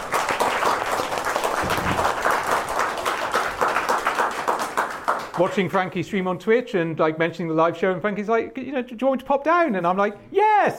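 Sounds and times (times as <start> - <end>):
crowd applauding: 0.0 - 5.6
speech: 5.4 - 10.7.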